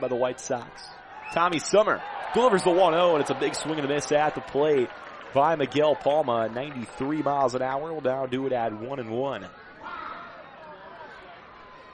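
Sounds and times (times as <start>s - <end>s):
speech: 0.0s - 9.6s
baseball game crowd murmur: 2.4s - 11.9s.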